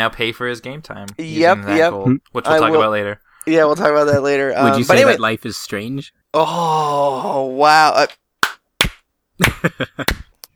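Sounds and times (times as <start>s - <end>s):
speech: 0.0s - 8.2s, 9.4s - 10.2s
slow hand claps: 8.4s - 10.5s.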